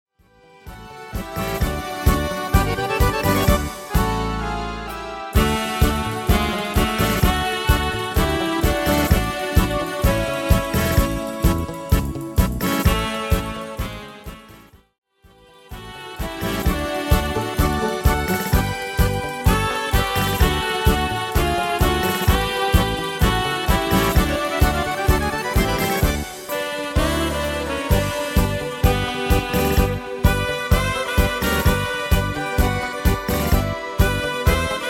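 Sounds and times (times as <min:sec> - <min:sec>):
tango music: 0:00.4 - 0:14.7, 0:15.4 - 0:34.8.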